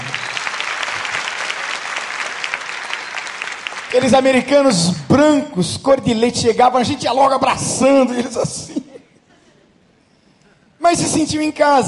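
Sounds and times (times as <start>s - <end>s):
audience applause: 0.0s - 4.6s
speech: 3.9s - 8.9s, 10.9s - 11.8s.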